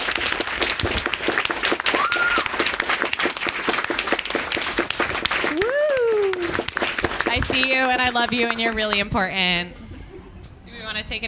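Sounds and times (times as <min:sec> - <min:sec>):
loud round of applause: 0:00.0 - 0:08.7
speech: 0:07.6 - 0:09.8, 0:11.0 - 0:11.2.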